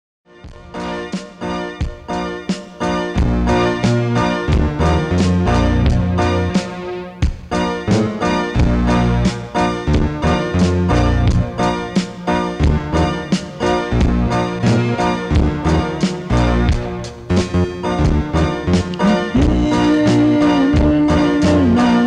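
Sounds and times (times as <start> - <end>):
rough reggae pop music: 0.6 - 22.0.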